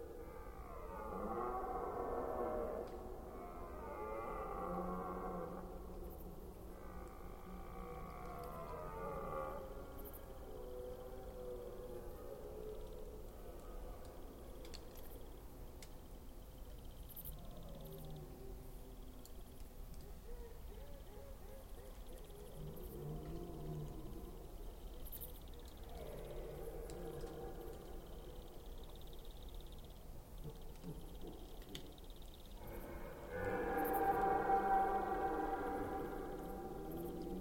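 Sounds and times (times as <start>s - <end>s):
red deer roaring: 0.2s - 5.7s, 6.7s - 9.8s, 32.6s - 37.3s
faint high ticks: 4.5s - 20.3s, 21.8s - 37.3s.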